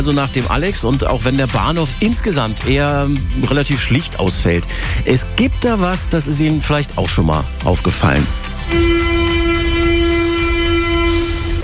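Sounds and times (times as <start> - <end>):
speech: 0.0 - 9.0
underground train at U-Bahnhof Schillingstraße platform: 8.7 - 11.6.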